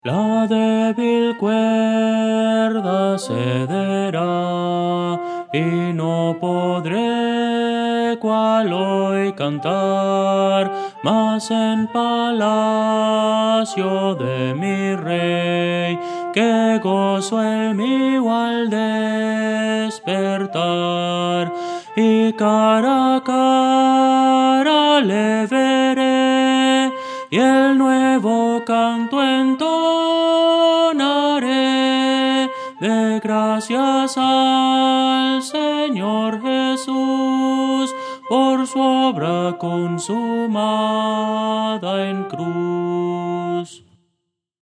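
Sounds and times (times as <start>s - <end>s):
Christian hymn melody: 0.0s - 44.0s.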